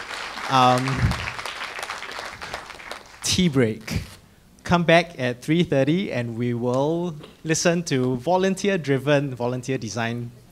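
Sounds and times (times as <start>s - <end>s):
audience applause: 0.0s - 3.4s
speech: 0.5s - 1.2s, 3.4s - 4.1s, 4.7s - 10.4s.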